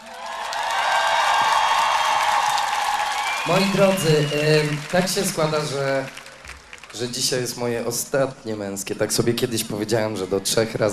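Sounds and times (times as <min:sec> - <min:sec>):
audience applause: 0:00.0 - 0:07.6
speech: 0:03.4 - 0:06.2, 0:06.9 - 0:10.9.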